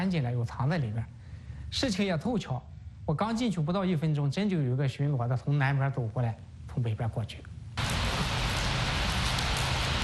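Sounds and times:
speech: 0.0s - 7.5s
light drizzling rain: 7.8s - 10.0s.

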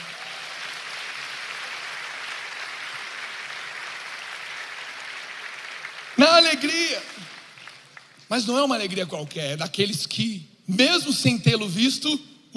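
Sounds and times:
audience applause: 0.0s - 8.3s
speech: 6.5s - 7.4s, 8.3s - 12.5s.

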